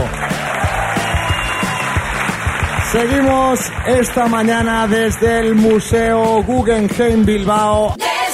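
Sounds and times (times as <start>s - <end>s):
audience applause: 0.0s - 5.8s
speech: 2.9s - 8.1s.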